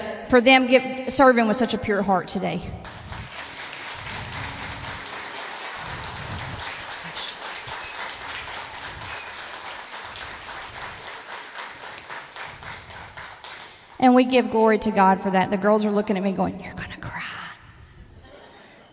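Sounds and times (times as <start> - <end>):
speech: 0.3 - 2.9, 14.0 - 16.9
audience clapping hands: 2.8 - 14.0.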